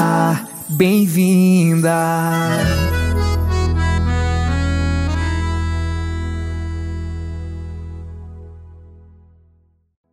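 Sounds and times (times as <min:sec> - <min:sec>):
jingle for a mayor: 0:00.0 - 0:07.6.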